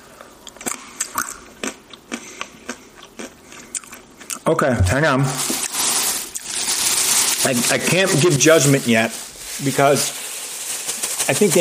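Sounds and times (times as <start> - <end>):
biting and chewing sea salt and vinegar almonds: 0.4 - 4.5
speech: 4.5 - 5.5, 7.4 - 10.2, 11.3 - 11.5.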